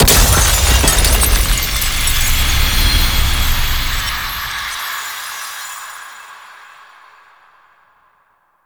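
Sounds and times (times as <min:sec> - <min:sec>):
crystal smashing: 0:00.0 - 0:05.9.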